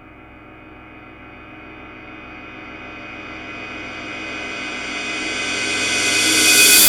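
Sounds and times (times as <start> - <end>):
reversed cymbal hit: 2.6 - 6.8.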